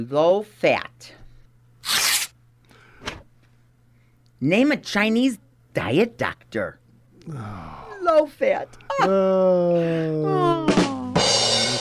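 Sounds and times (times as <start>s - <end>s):
speech: 0.0s - 1.2s, 4.4s - 10.7s
envelope being torn open: 1.8s - 2.3s.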